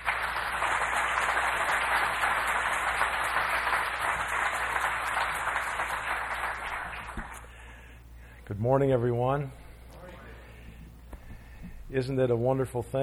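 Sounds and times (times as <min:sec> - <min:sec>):
audience applause welcoming a speaker: 0:00.0 - 0:07.5
speech: 0:08.6 - 0:09.6, 0:11.9 - 0:13.0.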